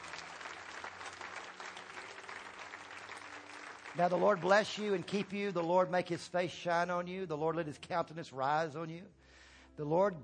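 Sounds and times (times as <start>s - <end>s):
audience clapping: 0.0s - 5.8s
speech: 4.0s - 10.2s.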